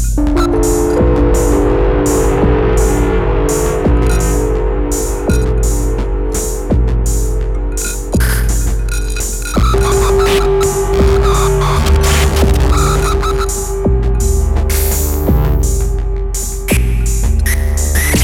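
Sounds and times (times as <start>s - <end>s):
dub music: 0.2s - 18.2s
noise: 0.2s - 18.2s.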